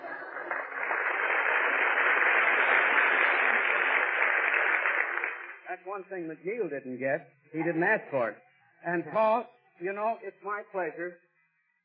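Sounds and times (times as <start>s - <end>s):
audience clapping at a 1943 breakfast show at Sardi's: 0.0s - 5.8s
speech: 5.7s - 11.2s.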